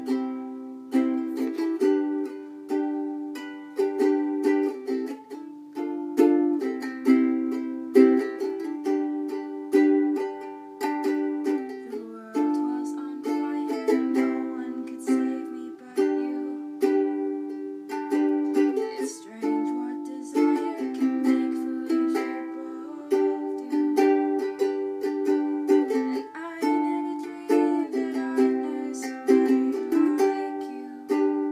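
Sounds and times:
ukulele: 0.0s - 31.5s.

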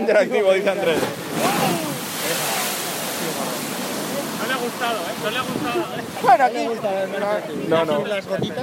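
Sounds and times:
speech: 0.0s - 2.5s, 4.5s - 8.6s
sea water breaking: 0.6s - 7.1s.

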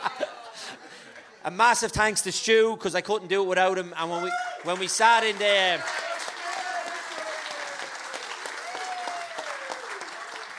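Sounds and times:
laughter: 0.0s - 1.4s
speech: 1.4s - 6.0s
audience applause and clapping: 4.6s - 10.5s.

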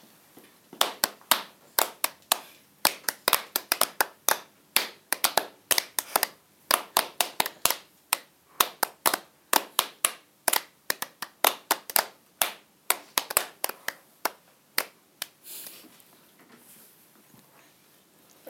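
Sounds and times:
clapping: 0.8s - 15.3s.

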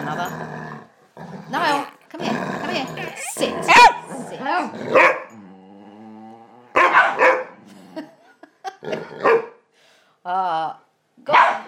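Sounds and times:
speech: 0.1s - 5.2s
dogs barking excitedly: 2.7s - 5.4s, 6.8s - 7.6s, 9.2s - 9.6s, 11.3s - 11.6s.

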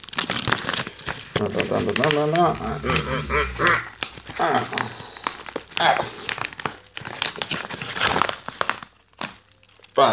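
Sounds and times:
posh-looking Royal Mail envelope paper crinkling and rustling as it is opened: 0.0s - 10.1s
person speaking: 1.4s - 6.3s.

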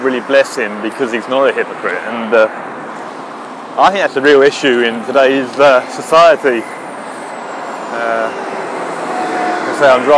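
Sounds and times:
speech: 0.0s - 2.8s, 3.8s - 6.8s, 7.9s - 8.5s, 9.8s - 10.1s
bus driving past: 2.4s - 10.1s.

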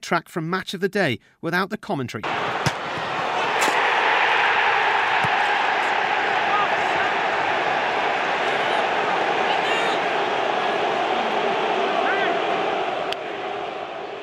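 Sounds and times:
speech: 0.1s - 2.6s
Manchester City fans cheering a goal: 2.2s - 14.2s
football hitting the post: 2.5s - 3.9s, 5.1s - 5.5s.

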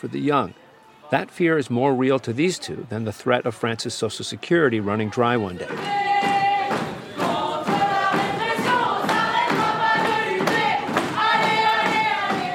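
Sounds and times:
speech: 0.0s - 6.1s
people singing at a student meeting: 4.7s - 12.5s
students pounding on desks at a student meeting: 5.6s - 12.5s.

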